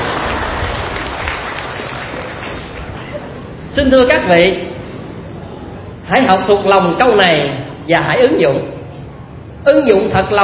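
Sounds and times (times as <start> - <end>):
audience applause at a Vietnamese teaching talk: 0.0 - 3.4
speech: 3.8 - 4.7, 6.1 - 8.8, 9.6 - 10.4.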